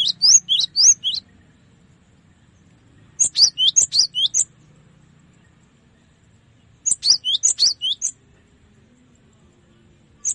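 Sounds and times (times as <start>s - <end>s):
cinereous tit singing high sharp two-pitched chirps: 0.0s - 1.6s, 3.0s - 4.6s, 6.6s - 8.2s, 10.1s - 10.3s.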